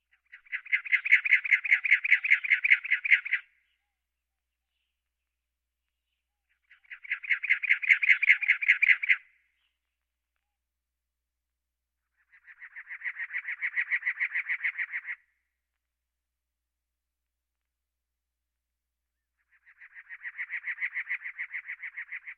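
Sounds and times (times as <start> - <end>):
birds: 0.0 - 10.6, 12.0 - 15.9, 19.1 - 22.3.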